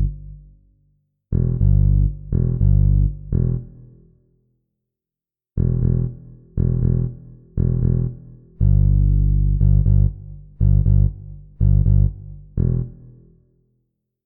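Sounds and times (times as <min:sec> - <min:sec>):
funk bass guitar: 0:00.0 - 0:00.4, 0:01.3 - 0:03.8, 0:05.6 - 0:13.1.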